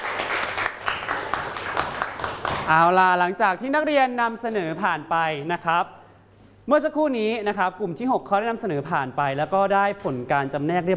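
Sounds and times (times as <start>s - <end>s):
students clapping in a classroom: 0.0s - 2.7s
speech: 2.7s - 6.0s, 6.7s - 10.9s.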